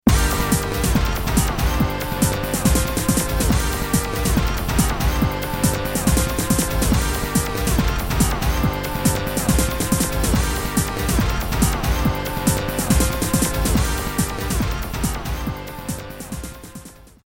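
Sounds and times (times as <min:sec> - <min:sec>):
victory music: 0:00.0 - 0:17.1.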